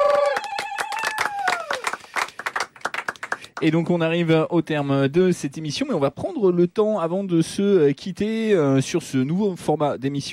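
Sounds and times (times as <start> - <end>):
falling whistle-like whoop: 0.0 - 1.8
small studio audience clapping: 0.0 - 4.0
speech: 3.6 - 10.3.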